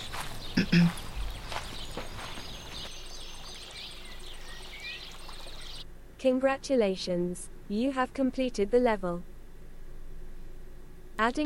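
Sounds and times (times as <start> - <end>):
footsteps of a character walking in a mobile video game: 0.0 - 2.9
speech: 0.6 - 1.0, 6.2 - 9.3, 11.2 - 11.4.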